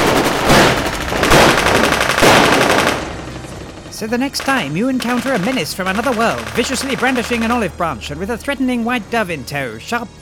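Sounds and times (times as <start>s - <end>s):
machine-gun fire at a visitor from another world: 0.0s - 3.8s, 4.4s - 7.6s
speech: 4.0s - 10.2s.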